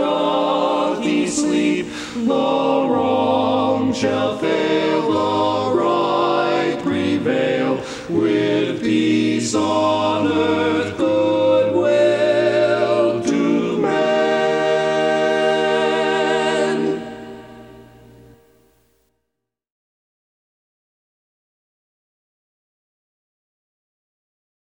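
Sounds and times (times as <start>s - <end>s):
tenor singing: 0.0s - 18.3s.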